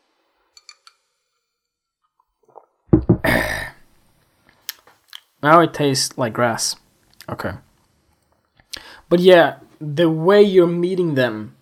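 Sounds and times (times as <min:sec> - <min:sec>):
person sipping lime water with ice: 0:02.4 - 0:02.8
speech: 0:05.4 - 0:07.7, 0:09.1 - 0:11.6.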